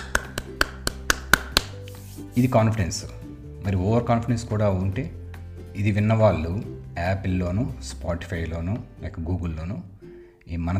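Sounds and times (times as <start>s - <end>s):
sharp hand claps: 0.0s - 1.9s
speech: 2.4s - 5.2s, 5.8s - 9.9s, 10.5s - 10.7s.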